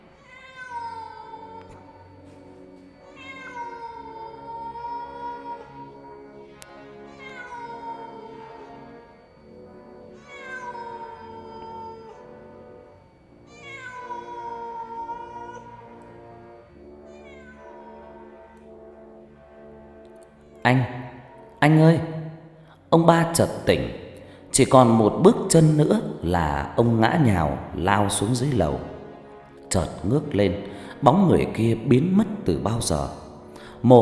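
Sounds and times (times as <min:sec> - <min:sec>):
cat meowing mournfully: 0:00.0 - 0:02.2, 0:03.0 - 0:09.0, 0:10.1 - 0:12.3, 0:13.4 - 0:16.2, 0:17.1 - 0:18.4
speech: 0:20.7 - 0:21.0, 0:21.6 - 0:22.1, 0:22.9 - 0:24.0, 0:24.6 - 0:28.9, 0:29.7 - 0:33.2, 0:33.8 - 0:34.0.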